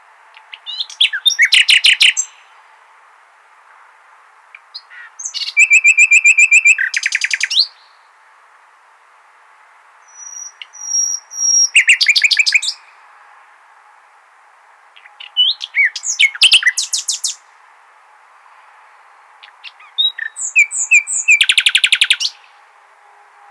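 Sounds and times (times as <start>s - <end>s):
common nightingale singing: 0.3s - 2.6s, 4.5s - 8.2s, 10.0s - 13.0s, 14.9s - 17.5s, 19.3s - 23.4s.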